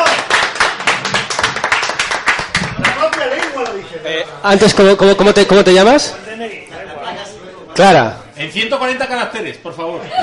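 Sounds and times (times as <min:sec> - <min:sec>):
audience applause: 0:00.0 - 0:03.8
speech: 0:04.3 - 0:06.5, 0:07.8 - 0:10.2.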